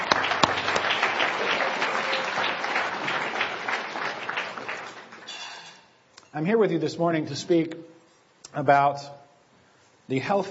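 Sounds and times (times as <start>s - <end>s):
audience applause: 0.0s - 5.3s
speech: 6.4s - 7.9s, 8.5s - 9.2s, 10.1s - 10.5s.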